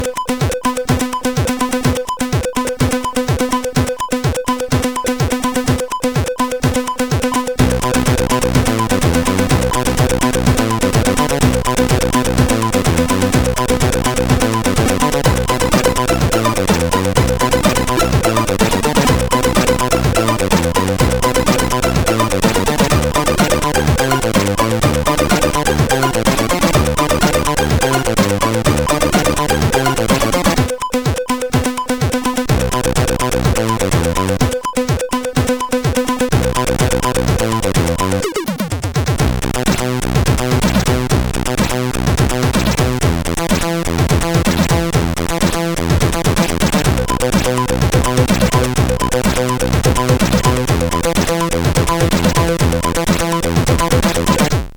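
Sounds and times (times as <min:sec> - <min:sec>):
CSG8580R5 sound chip music: 0:00.0 - 0:54.6.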